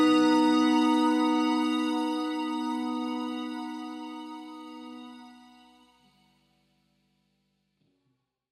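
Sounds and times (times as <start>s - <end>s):
filtered horns: 0.0s - 6.1s.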